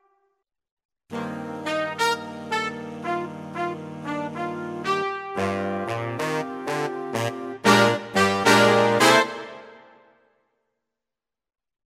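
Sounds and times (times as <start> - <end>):
Genos sax and brass pop music: 1.1 - 10.0.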